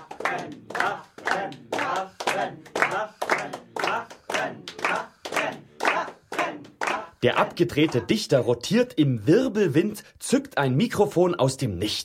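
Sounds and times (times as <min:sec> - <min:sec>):
half of the audience clapping: 0:00.0 - 0:08.2
speech: 0:02.4 - 0:03.2, 0:07.2 - 0:12.0.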